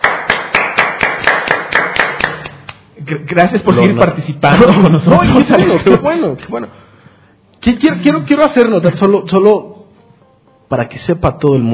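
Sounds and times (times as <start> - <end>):
single person clapping: 0.0 - 2.9
speech: 3.1 - 6.8, 7.6 - 9.7, 10.7 - 11.7.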